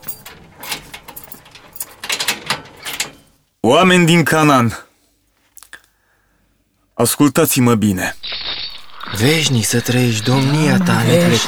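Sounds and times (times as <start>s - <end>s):
prison cell door being unlocked: 0.0s - 3.3s
speech: 3.7s - 4.9s, 7.0s - 8.4s, 9.0s - 11.4s.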